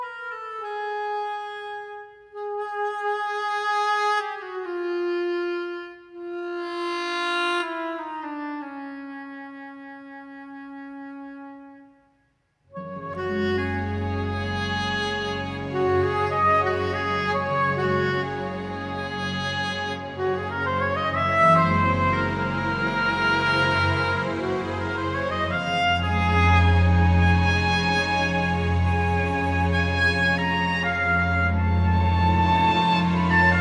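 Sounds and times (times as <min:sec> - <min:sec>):
soprano saxophone: 0:00.0 - 0:33.5.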